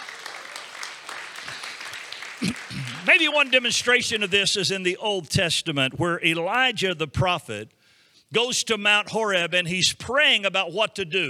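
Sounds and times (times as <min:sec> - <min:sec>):
audience clapping: 0:00.0 - 0:04.8
speech: 0:02.4 - 0:11.2.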